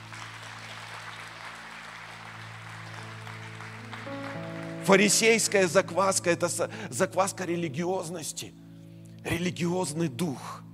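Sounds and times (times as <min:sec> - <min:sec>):
audience applause: 0:00.0 - 0:05.8
speech: 0:04.9 - 0:08.6, 0:09.2 - 0:10.6.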